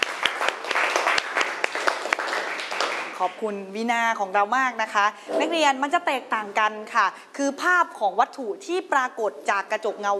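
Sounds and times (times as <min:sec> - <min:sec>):
classroom applause: 0:00.0 - 0:03.4
speech: 0:03.2 - 0:10.1.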